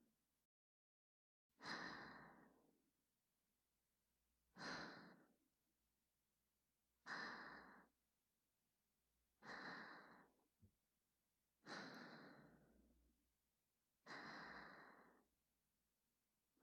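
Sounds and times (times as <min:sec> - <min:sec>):
whispered breathing: 0:01.6 - 0:02.8, 0:04.5 - 0:05.4, 0:07.0 - 0:08.0, 0:09.4 - 0:10.4, 0:11.6 - 0:13.1, 0:14.0 - 0:15.3
sleep breathing: 0:04.6 - 0:05.4, 0:07.1 - 0:08.0, 0:09.4 - 0:10.4, 0:11.6 - 0:12.9, 0:14.1 - 0:15.3.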